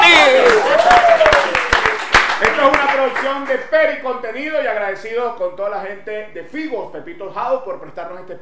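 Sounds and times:
applause: 0.0s - 3.6s
speech: 3.4s - 8.4s.

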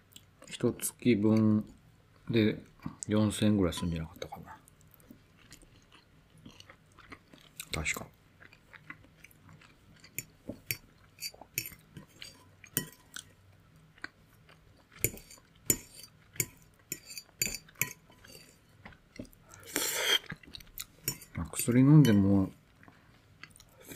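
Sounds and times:
speech: 0.6s - 4.4s, 7.8s - 8.2s, 21.7s - 22.6s
quiet chewing: 4.2s - 21.8s, 22.5s - 23.9s
cutlery clinking against dishes at a spaghetti meal: 10.2s - 13.2s, 15.0s - 18.6s, 21.0s - 22.3s.

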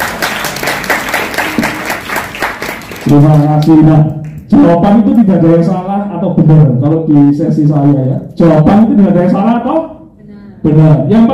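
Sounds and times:
audience applause during a talk session: 0.0s - 3.6s
speech: 3.1s - 10.0s, 10.6s - 11.3s.

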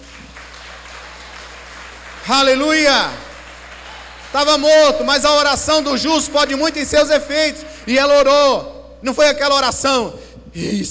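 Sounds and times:
audience applause: 0.0s - 8.4s
speech: 2.2s - 3.2s, 4.3s - 10.9s.

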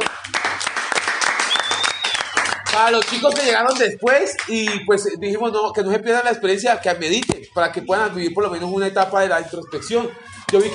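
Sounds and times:
audience applause: 0.0s - 3.5s
speech: 2.8s - 10.7s.

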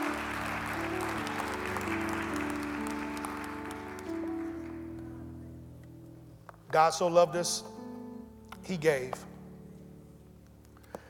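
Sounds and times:
audience applause: 0.0s - 5.1s
sustained keyboard chords: 0.0s - 11.0s
speech: 6.7s - 7.7s, 8.7s - 9.3s.

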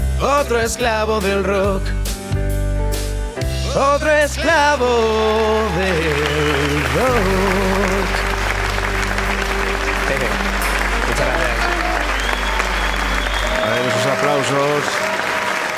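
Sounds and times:
speech: 0.2s - 2.5s, 3.7s - 8.2s, 13.7s - 15.0s
live studio applause: 4.4s - 15.7s.

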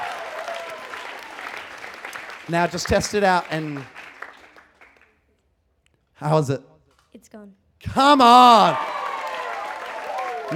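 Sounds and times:
audience applause: 0.0s - 5.1s, 8.0s - 10.5s
speech: 2.5s - 4.0s, 6.2s - 8.9s.

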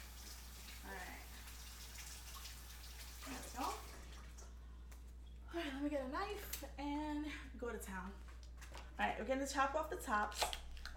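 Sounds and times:
running water rinsing freshly peeled potatoes: 0.0s - 4.6s
speech: 5.8s - 8.3s, 9.0s - 10.6s.

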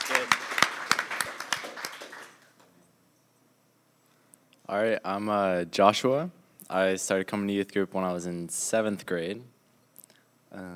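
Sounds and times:
small audience clapping: 0.0s - 2.7s
speech: 4.7s - 9.5s, 10.5s - 10.7s.

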